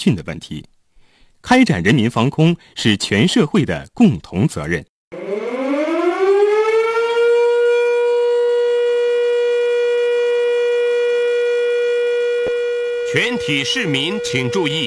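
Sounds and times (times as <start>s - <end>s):
speech: 0.0s - 0.7s, 1.4s - 5.2s, 13.2s - 14.8s
civil defense air raid siren: 5.1s - 14.8s.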